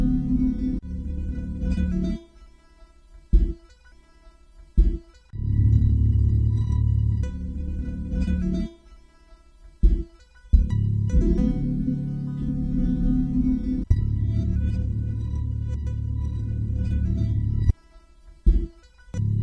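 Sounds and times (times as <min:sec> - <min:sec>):
bass loop: 0:00.0 - 0:02.2, 0:03.3 - 0:03.6, 0:04.8 - 0:08.7, 0:09.8 - 0:17.8, 0:18.4 - 0:19.4.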